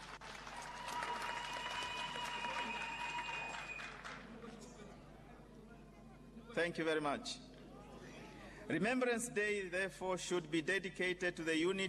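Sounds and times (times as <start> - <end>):
audience applause: 0.0 - 4.5
speech: 6.6 - 7.5, 8.7 - 11.8.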